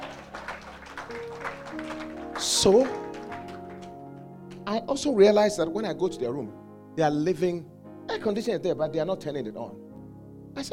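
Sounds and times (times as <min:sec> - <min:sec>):
crowd applauding: 0:00.0 - 0:04.6
speech: 0:02.4 - 0:03.0, 0:04.8 - 0:09.8.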